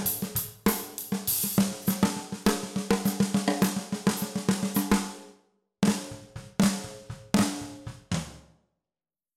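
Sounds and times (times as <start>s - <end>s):
Pearl brass 14X65 snare drum: 0.0s - 8.5s.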